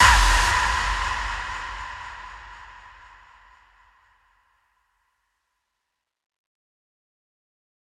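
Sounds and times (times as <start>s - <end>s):
death whistle: 0.0s - 3.6s.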